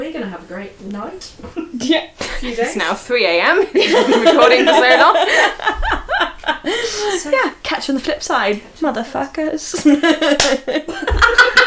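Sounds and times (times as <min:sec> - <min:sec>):
speech: 0:00.2 - 0:11.6
laughter: 0:03.7 - 0:06.9, 0:09.8 - 0:11.6
single hand clap ending the recording: 0:10.4 - 0:10.6.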